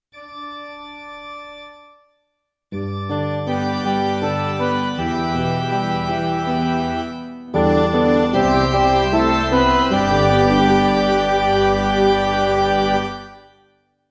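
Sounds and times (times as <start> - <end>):
gospel midi music: 2.8 - 13.5.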